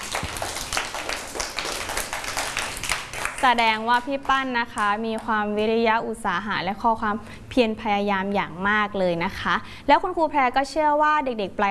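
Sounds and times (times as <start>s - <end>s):
group of people clapping: 0.0s - 5.3s
speech: 3.4s - 11.6s.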